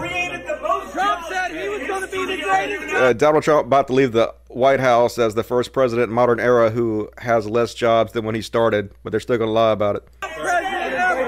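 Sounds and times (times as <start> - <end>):
crowd booing: 0.0 - 3.1, 10.2 - 11.2
speech: 2.0 - 10.5.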